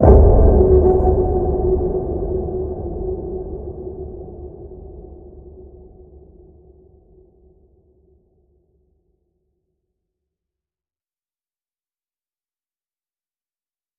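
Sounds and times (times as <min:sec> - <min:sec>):
deep water ping: 0:00.0 - 0:05.3.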